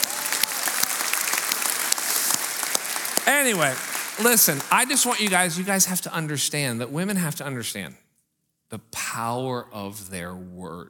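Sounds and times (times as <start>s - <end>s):
audience round of applause: 0.0s - 6.0s
speech: 3.3s - 8.0s, 8.7s - 10.8s.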